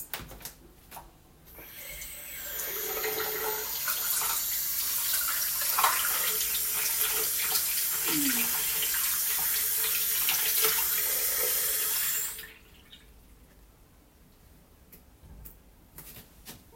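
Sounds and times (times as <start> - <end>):
person urinating after waking up: 1.5 - 13.2.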